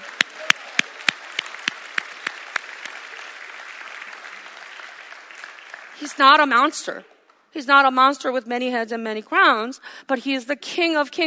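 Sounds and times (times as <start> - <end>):
congregation at a church service clapping in rhythm: 0.0 - 7.5
speech: 6.0 - 11.2.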